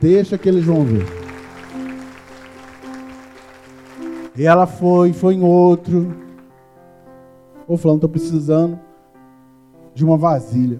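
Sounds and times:
speech: 0:00.0 - 0:01.2, 0:04.4 - 0:06.2, 0:07.7 - 0:08.9, 0:10.0 - 0:10.7
audience applauding: 0:00.0 - 0:04.9, 0:05.8 - 0:06.5.

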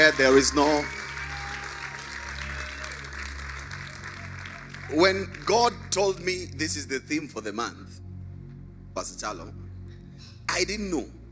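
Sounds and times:
audience clapping: 0:00.0 - 0:06.5
low sustained musical drone: 0:00.0 - 0:11.3
speech: 0:00.1 - 0:01.0, 0:04.9 - 0:07.9, 0:09.0 - 0:09.6, 0:10.5 - 0:11.2.

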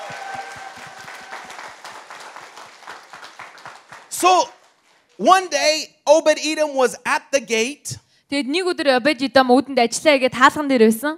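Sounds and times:
crowd clapping: 0:00.0 - 0:05.2
speech: 0:04.2 - 0:04.6, 0:05.2 - 0:11.1.

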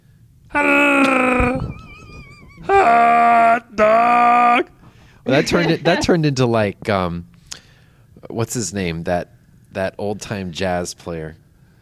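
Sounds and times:
speech: 0:00.5 - 0:00.9, 0:04.6 - 0:07.3, 0:08.2 - 0:11.4
voice imitating a Wookiee growl: 0:00.5 - 0:01.6, 0:02.6 - 0:05.9
laughter: 0:01.0 - 0:03.6, 0:05.3 - 0:06.2.

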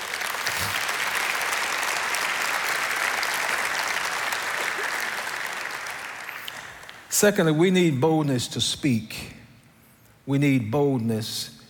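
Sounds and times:
audience applauding: 0:00.0 - 0:07.1
speech: 0:07.2 - 0:09.4, 0:10.3 - 0:11.6.

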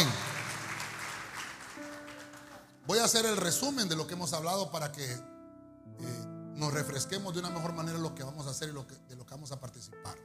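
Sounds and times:
audience clapping hands: 0:00.0 - 0:03.3
speech: 0:03.0 - 0:05.3, 0:06.0 - 0:10.2.

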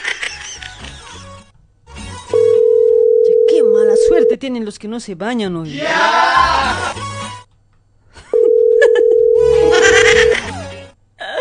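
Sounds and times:
telephone ringing with no answer in a comedy radio skit: 0:02.3 - 0:04.4, 0:08.3 - 0:10.4
speech: 0:04.4 - 0:07.1.

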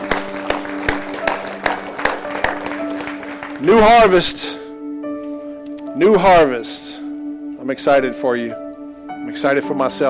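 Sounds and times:
audience clapping: 0:00.0 - 0:04.3
speech: 0:03.6 - 0:04.6, 0:06.0 - 0:07.0, 0:07.6 - 0:08.6, 0:09.3 - 0:10.0.

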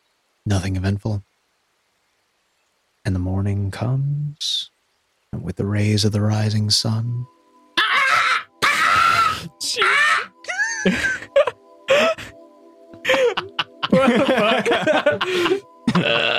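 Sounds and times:
speech: 0:00.5 - 0:01.3, 0:03.0 - 0:04.7, 0:05.4 - 0:07.4, 0:09.6 - 0:10.1, 0:10.8 - 0:11.2, 0:14.0 - 0:16.3
voice imitating a wheezing bird call: 0:07.8 - 0:10.9, 0:13.0 - 0:13.8, 0:15.2 - 0:16.3
laughter: 0:10.5 - 0:12.3, 0:13.0 - 0:16.3.

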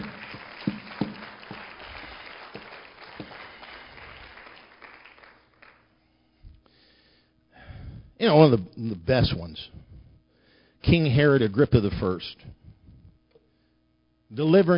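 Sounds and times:
audience clapping hands: 0:00.0 - 0:06.0
speech: 0:08.2 - 0:09.8, 0:10.8 - 0:12.6, 0:14.3 - 0:14.7.

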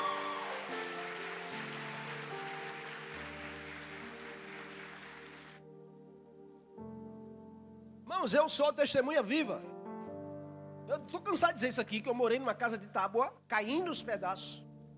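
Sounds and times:
audience applause: 0:00.0 - 0:05.6
sustained keyboard chords: 0:00.0 - 0:12.9
speech: 0:08.2 - 0:09.8, 0:10.9 - 0:14.7.

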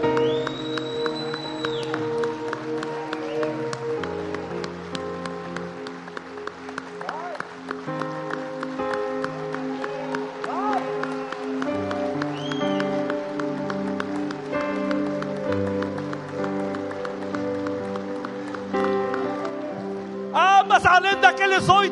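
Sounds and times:
applause: 0:00.0 - 0:21.9.

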